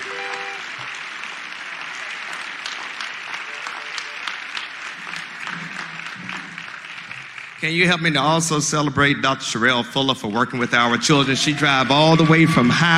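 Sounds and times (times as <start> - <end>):
brief whistle-like tone: 0.0 - 0.7
audience applause: 0.0 - 8.6, 10.8 - 12.9
speech: 7.6 - 12.9.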